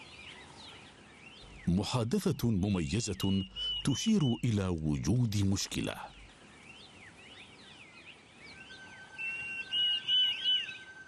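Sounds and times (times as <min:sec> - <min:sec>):
speech: 0:01.7 - 0:06.2
Diederik cuckoo call: 0:03.0 - 0:06.3, 0:08.5 - 0:11.0.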